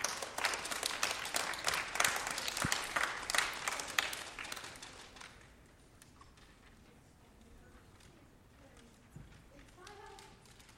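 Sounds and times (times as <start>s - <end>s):
crowd applause: 0.0s - 5.6s.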